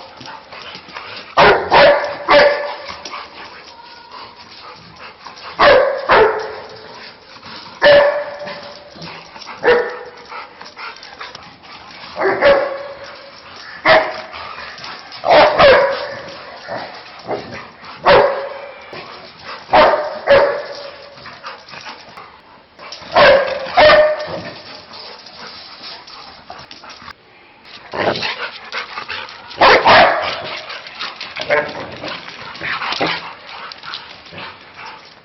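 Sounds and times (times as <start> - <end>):
dog barking at a cat: 1.4 - 2.9, 5.6 - 6.6, 7.8 - 8.6, 9.6 - 10.1, 12.2 - 13.0, 15.2 - 16.3, 18.0 - 18.6, 19.7 - 20.9, 23.1 - 24.5, 29.6 - 30.4.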